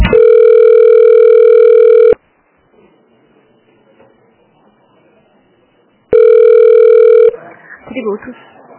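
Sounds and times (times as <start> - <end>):
telephone ringback tone while a bank employee transfers a call: 0.1 - 2.2, 6.1 - 7.4.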